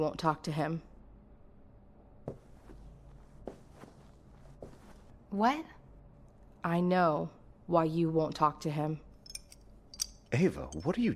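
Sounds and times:
speech: 0.0s - 0.9s, 5.3s - 5.8s, 6.6s - 9.1s, 10.3s - 11.1s
footsteps of a person walking toward the stairs: 2.3s - 5.2s.

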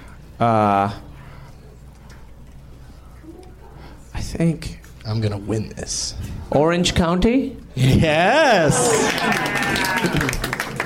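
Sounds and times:
speech: 0.4s - 1.1s, 4.3s - 10.5s
round of applause: 8.7s - 10.8s.

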